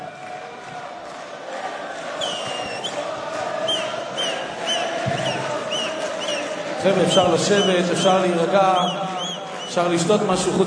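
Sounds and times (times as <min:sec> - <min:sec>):
large crowd clapping and cheering: 0:00.0 - 0:10.6
shrill whistles: 0:02.0 - 0:09.9
speech: 0:06.8 - 0:09.1, 0:09.7 - 0:10.6.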